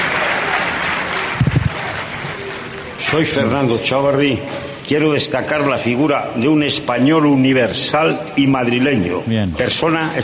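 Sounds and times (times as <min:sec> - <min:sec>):
audience applause: 0:00.0 - 0:04.0
speech: 0:03.1 - 0:10.2.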